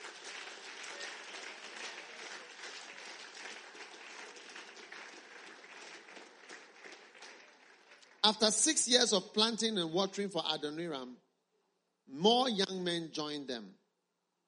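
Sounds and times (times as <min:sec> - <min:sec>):
audience applause: 0:00.0 - 0:08.5
speech: 0:08.3 - 0:11.3, 0:12.1 - 0:13.8.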